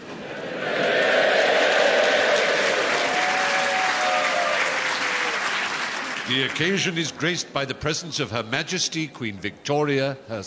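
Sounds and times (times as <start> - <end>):
faint cheering: 0.6 - 6.3
large crowd applauding in a concert hall: 0.7 - 7.4
speech: 6.3 - 10.4.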